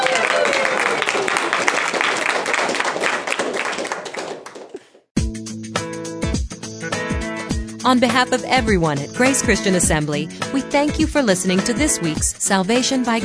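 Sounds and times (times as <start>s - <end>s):
crowd clapping: 0.0s - 5.1s
music: 5.2s - 13.2s
speech: 7.9s - 13.2s.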